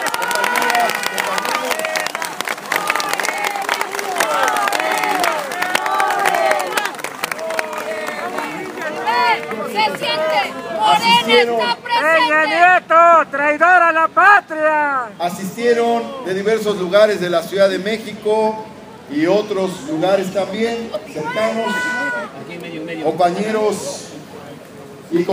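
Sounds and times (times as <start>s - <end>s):
crowd applauding: 0.0s - 11.8s
crowd cheering and shouting: 0.0s - 15.2s, 21.1s - 22.4s
speech: 13.2s - 22.1s, 23.0s - 24.0s, 25.1s - 25.3s.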